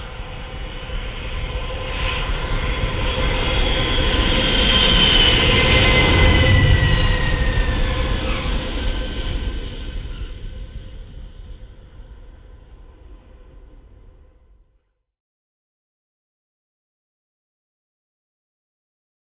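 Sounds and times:
airplane taking off: 0:00.0 - 0:14.7.

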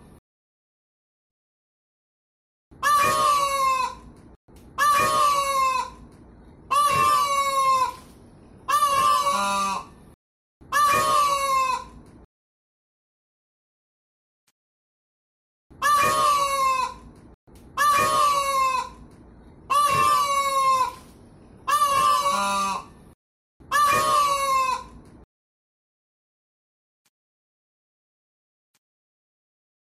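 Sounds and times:
peafowl braying calls: 0:02.8 - 0:04.1, 0:04.8 - 0:06.0, 0:06.7 - 0:08.1, 0:08.7 - 0:09.9, 0:10.7 - 0:12.0, 0:15.8 - 0:17.1, 0:17.8 - 0:19.0, 0:19.7 - 0:23.0, 0:23.7 - 0:25.0.

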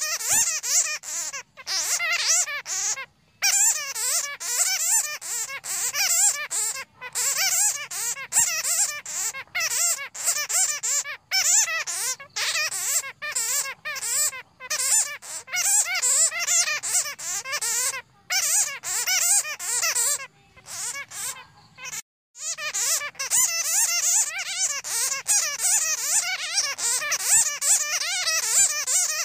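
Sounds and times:
bat squeaking: 0:00.0 - 0:29.2.

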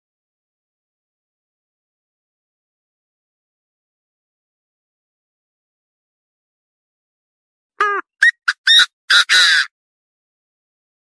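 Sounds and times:
partridge harsh call: 0:07.8 - 0:09.7.

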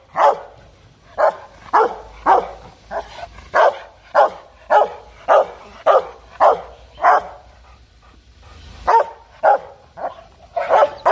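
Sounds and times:
dog barking: 0:00.1 - 0:00.6, 0:01.2 - 0:07.4, 0:08.9 - 0:11.1.

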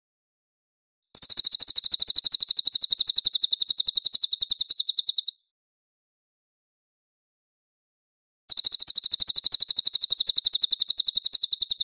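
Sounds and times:
folk song: 0:01.2 - 0:05.4, 0:08.5 - 0:11.8.

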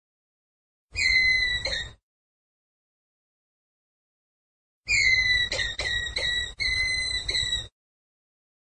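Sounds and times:
ground squirrel whistled call: 0:01.0 - 0:02.0, 0:04.9 - 0:07.7.

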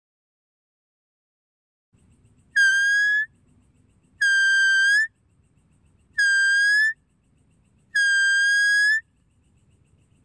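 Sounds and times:
deer whistled calls: 0:02.5 - 0:03.3, 0:04.2 - 0:05.1, 0:06.1 - 0:07.0, 0:07.9 - 0:09.1.

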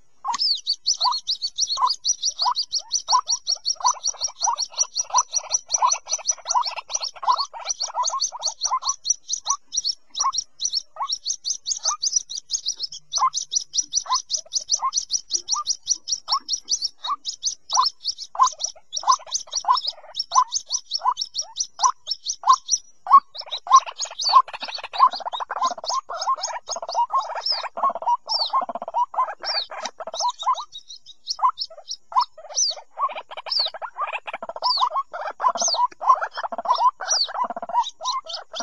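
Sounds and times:
white-breasted waterhen calls: 0:00.0 - 0:38.6.

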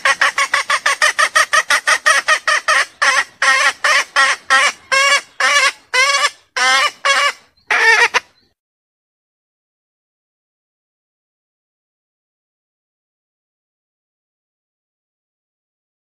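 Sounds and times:
junglefowl mating call clucking and squawking: 0:00.0 - 0:08.4.

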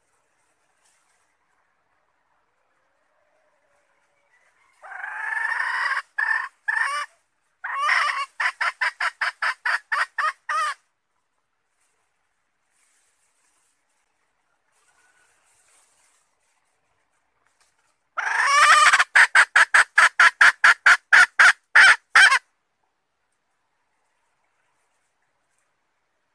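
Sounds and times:
red junglefowl hen cackling: 0:04.6 - 0:10.8, 0:18.2 - 0:22.5.

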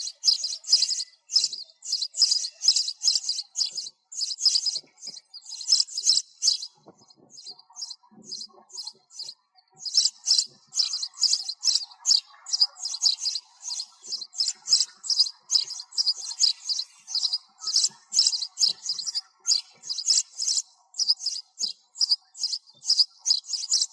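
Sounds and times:
sparrow chirping: 0:00.0 - 0:23.9.

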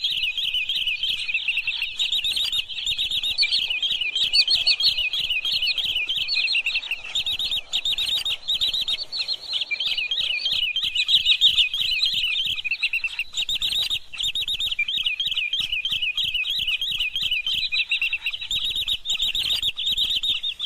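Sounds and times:
green sandpiper calling: 0:00.0 - 0:20.6.

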